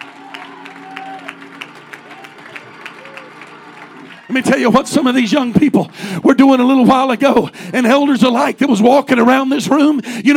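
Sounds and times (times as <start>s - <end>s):
audience clapping hands: 0.0s - 6.8s
speech: 4.3s - 10.3s.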